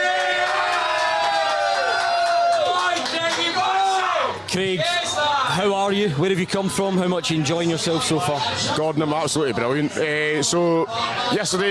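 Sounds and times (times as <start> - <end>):
audience applause: 0.0 - 3.8
audience cheering with whoops and shouts: 0.0 - 4.4
speech: 4.5 - 5.0, 5.6 - 11.6.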